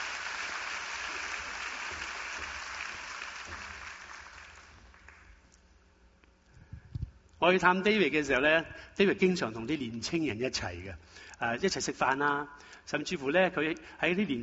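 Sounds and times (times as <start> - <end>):
audience applause welcoming a guest: 0.0 - 5.4
speech: 7.4 - 14.4.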